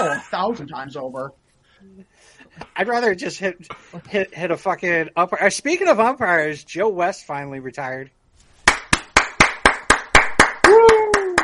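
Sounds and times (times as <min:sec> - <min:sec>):
speech: 0:00.1 - 0:08.2
hands clapping: 0:08.6 - 0:11.4.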